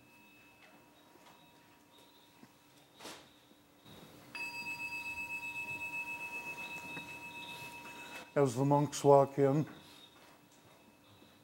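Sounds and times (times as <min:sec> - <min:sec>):
bell being played: 0:00.0 - 0:01.5, 0:04.3 - 0:09.6
speech: 0:08.4 - 0:09.8.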